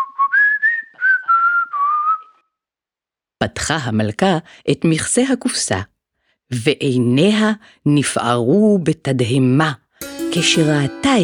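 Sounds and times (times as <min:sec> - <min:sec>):
person whistling a cheerful tune: 0:00.0 - 0:02.5
speech: 0:03.4 - 0:05.9, 0:06.5 - 0:11.2.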